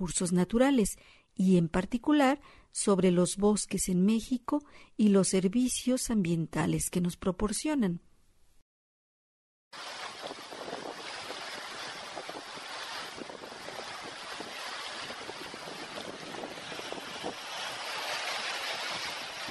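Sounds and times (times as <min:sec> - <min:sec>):
speech: 0:00.0 - 0:08.1
river water flowing: 0:09.8 - 0:19.4.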